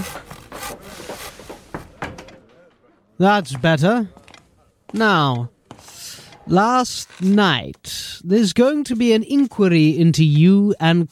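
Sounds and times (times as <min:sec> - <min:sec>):
door being closed: 0:00.0 - 0:02.9
speech: 0:03.2 - 0:04.2, 0:04.9 - 0:05.6, 0:06.5 - 0:11.1.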